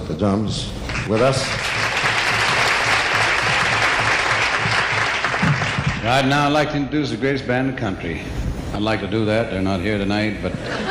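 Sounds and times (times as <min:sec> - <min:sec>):
speech: 0:00.1 - 0:01.7, 0:06.0 - 0:10.8
audience applause: 0:00.9 - 0:06.3
laughter: 0:10.4 - 0:10.8.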